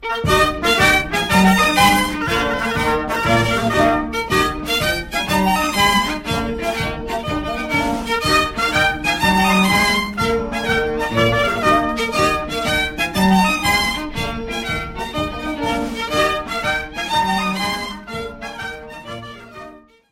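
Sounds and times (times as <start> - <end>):
galliard dance music: 0.0 - 19.9.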